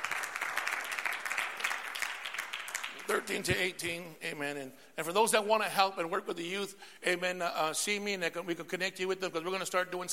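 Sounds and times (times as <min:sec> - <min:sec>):
audience applause: 0:00.0 - 0:03.6
speech: 0:03.1 - 0:10.1.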